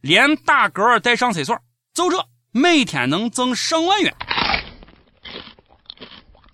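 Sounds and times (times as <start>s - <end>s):
speech: 0.0s - 4.3s
crunchy chewing from livestream: 4.1s - 6.5s.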